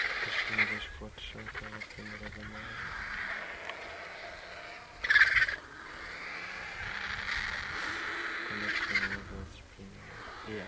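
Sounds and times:
vulture call: 0.0 - 10.6.

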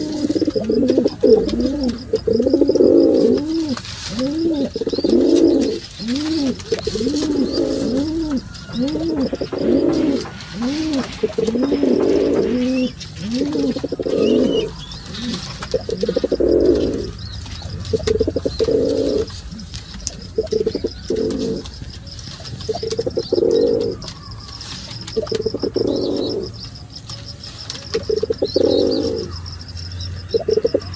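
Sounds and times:
pigeon calling: 0.0 - 30.9.

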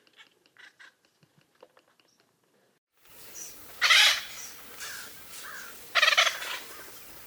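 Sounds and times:
woodpecker: 3.1 - 7.2.

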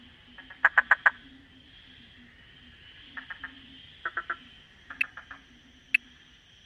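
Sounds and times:
frog croaking: 0.0 - 1.4, 2.9 - 6.2.

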